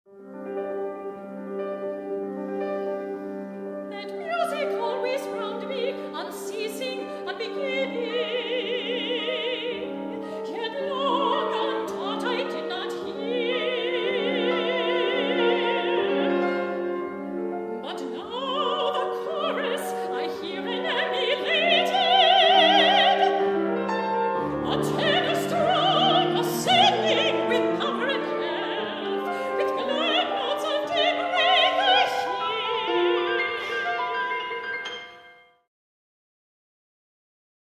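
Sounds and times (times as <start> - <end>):
music: 0.1 - 35.7.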